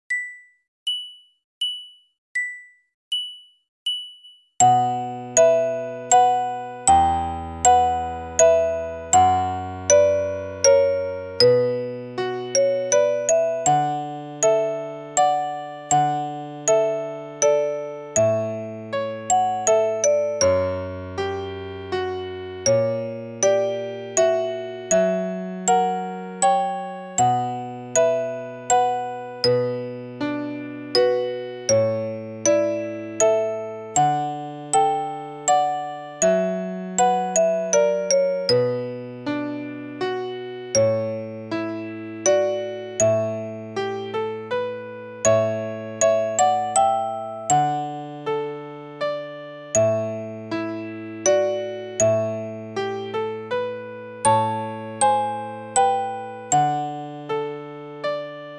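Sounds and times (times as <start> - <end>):
slow waltz in B minor: 4.7 - 58.5.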